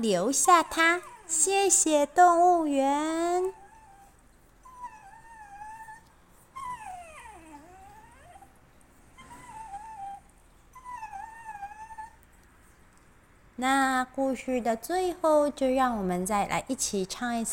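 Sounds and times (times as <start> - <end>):
speech: 0.0 - 3.6, 13.6 - 17.5
puppy whimpering: 0.2 - 2.4, 3.1 - 12.2.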